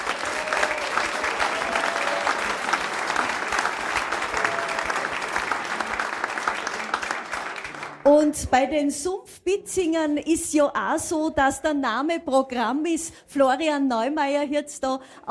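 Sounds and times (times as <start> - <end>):
big audience applause: 0.0 - 8.1
speech: 8.1 - 15.2.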